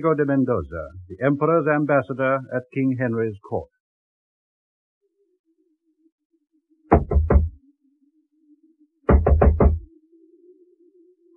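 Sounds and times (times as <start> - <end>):
speech: 0.0 - 3.7
knocking on a door at night: 6.9 - 7.6, 9.1 - 9.9.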